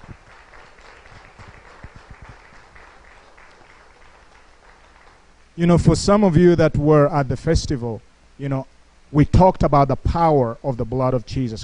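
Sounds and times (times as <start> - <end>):
audience clapping: 0.0 - 5.4
speech: 5.6 - 11.6.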